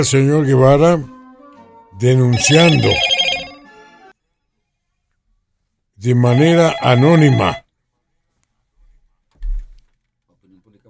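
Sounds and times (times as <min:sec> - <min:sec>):
speech: 0:00.0 - 0:01.2, 0:02.0 - 0:03.2, 0:06.0 - 0:07.6
telephone ringtone for an incoming call: 0:02.3 - 0:03.7, 0:06.3 - 0:07.6.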